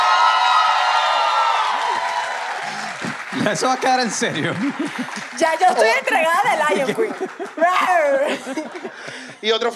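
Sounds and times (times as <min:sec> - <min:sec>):
whoops: 0:00.0 - 0:03.0
crowd applauding: 0:00.0 - 0:09.3
laughter: 0:03.1 - 0:09.7
speech: 0:03.5 - 0:09.7.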